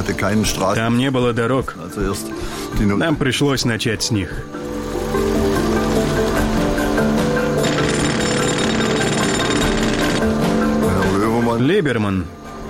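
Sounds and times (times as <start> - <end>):
speech: 0.0 - 4.6, 11.7 - 12.4
heavy drilling machines roaring: 4.6 - 10.5.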